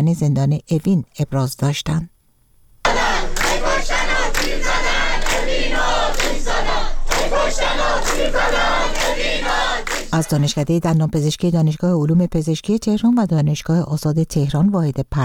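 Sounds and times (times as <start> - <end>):
speech: 0.0 - 2.1, 7.2 - 15.2
protesting students chanting slogans: 2.9 - 10.6.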